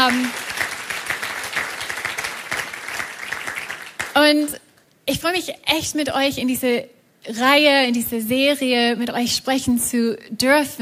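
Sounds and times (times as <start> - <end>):
speech: 0.0 - 0.5, 4.3 - 10.8
audience applause: 0.0 - 4.2.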